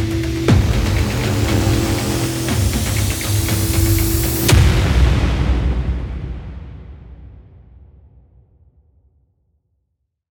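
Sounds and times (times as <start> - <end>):
trailer music: 0.0 - 7.4.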